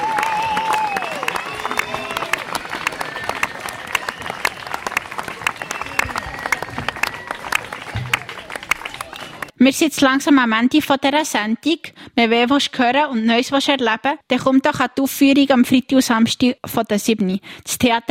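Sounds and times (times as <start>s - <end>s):
live theater audience applause: 0.0s - 9.5s
whistles and cheering voices: 0.0s - 9.6s
speech: 9.6s - 18.0s.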